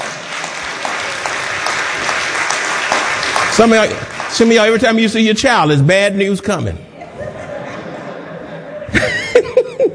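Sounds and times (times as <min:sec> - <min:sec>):
audience clapping hands in praise: 0:00.0 - 0:05.6
speech: 0:03.6 - 0:06.9
laughter: 0:06.9 - 0:09.9.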